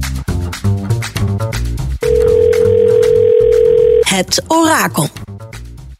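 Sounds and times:
music: 0.0 - 5.9
telephone dial tone while placing a call: 2.0 - 4.0
speech: 4.1 - 5.2.

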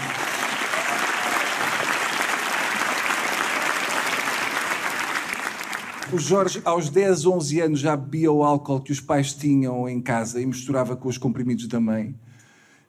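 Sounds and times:
audience applause: 0.0 - 6.5
speech: 6.1 - 12.3.

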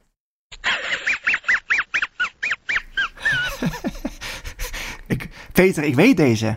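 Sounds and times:
cartoon dog wheezing laugh: 0.6 - 4.8
speech: 5.6 - 6.5.

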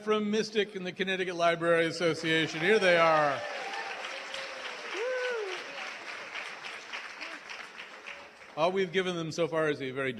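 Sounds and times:
speech: 0.0 - 3.8, 8.6 - 10.1
live audience applauding: 2.3 - 8.9.

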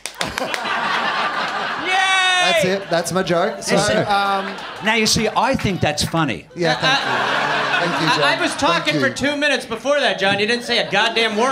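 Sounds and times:
hand clap: 0.0 - 0.8
laughter: 0.1 - 9.4, 10.2 - 11.5
speech: 0.2 - 0.8, 2.6 - 11.5.

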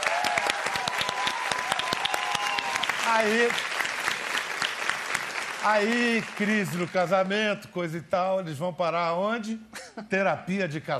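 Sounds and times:
audience applause: 0.0 - 7.3
speech: 3.1 - 3.7, 5.6 - 10.9.

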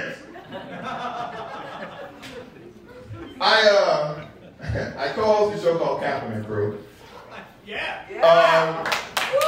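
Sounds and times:
laughter: 0.1 - 5.2, 7.0 - 8.6
speech: 5.7 - 6.9, 7.7 - 8.9
audience clapping: 8.4 - 9.4.

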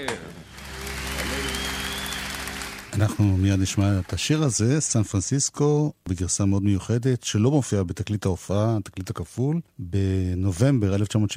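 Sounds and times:
speech: 0.0 - 0.4, 3.0 - 11.3
live concert crowd cheering and shouting: 0.0 - 3.4
live concert crowd clapping: 0.0 - 4.8.

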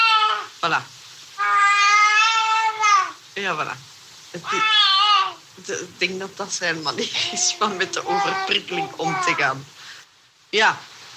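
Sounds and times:
baby screaming: 0.0 - 0.6, 1.4 - 3.2, 4.4 - 5.5, 6.9 - 9.6
speech: 0.7 - 1.0, 3.4 - 5.0, 5.6 - 9.8, 10.5 - 10.9.

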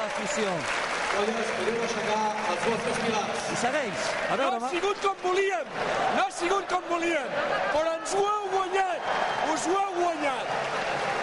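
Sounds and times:
crowd applauding: 0.0 - 11.2
speech: 0.2 - 11.1
murmur of voices: 2.7 - 11.2.

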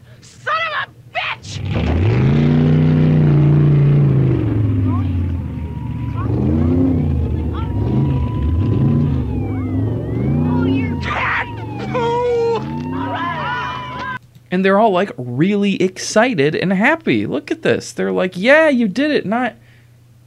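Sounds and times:
car driving away: 1.5 - 14.2
speech: 14.6 - 19.6.

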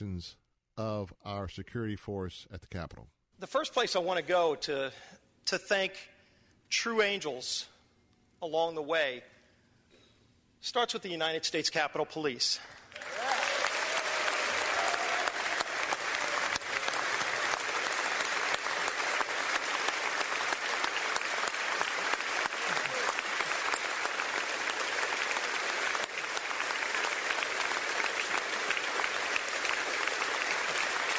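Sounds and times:
speech: 0.2 - 6.1, 6.7 - 7.7, 8.4 - 9.4, 10.6 - 13.1
standing ovation applause for the Capitol Police: 12.7 - 31.1.

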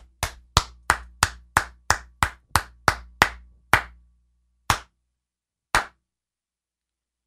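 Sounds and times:
one person clapping hands: 0.0 - 4.0, 4.7 - 4.9, 5.7 - 6.0.

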